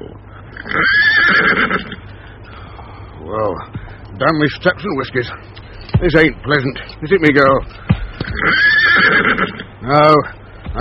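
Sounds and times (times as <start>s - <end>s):
little mare whinnying in a snowstorm: 0.5s - 2.2s, 8.2s - 9.8s
speech: 4.2s - 10.8s.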